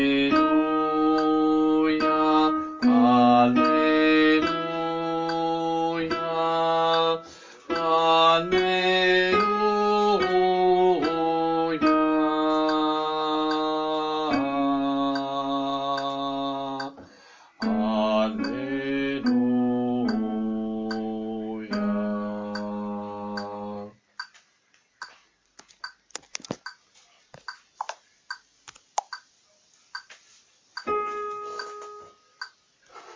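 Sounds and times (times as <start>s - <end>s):
contralto choir singing: 0.0s - 17.0s, 17.6s - 24.0s.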